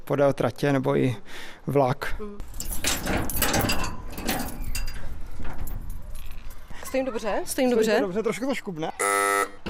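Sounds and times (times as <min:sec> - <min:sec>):
speech: 0:00.1 - 0:03.8, 0:06.9 - 0:09.2
turntable rotation warning signal: 0:09.0 - 0:09.6.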